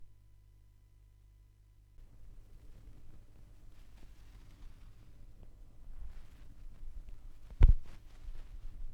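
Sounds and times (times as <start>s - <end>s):
vinyl record noise: 2.0s - 8.8s.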